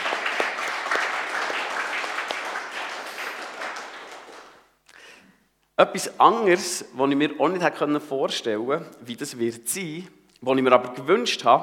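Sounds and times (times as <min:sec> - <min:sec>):
audience applauding: 0:00.0 - 0:04.7
speech: 0:05.8 - 0:11.6.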